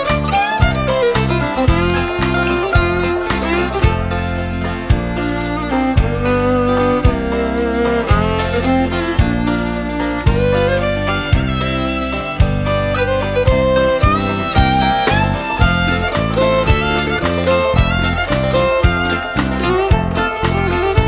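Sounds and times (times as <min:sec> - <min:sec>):
hoedown music: 0:00.0 - 0:21.0.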